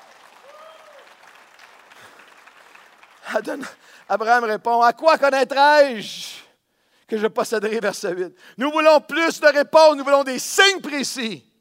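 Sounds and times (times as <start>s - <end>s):
congregation applauding during a church service: 0.0s - 4.5s
speech: 3.3s - 6.2s, 7.1s - 11.5s.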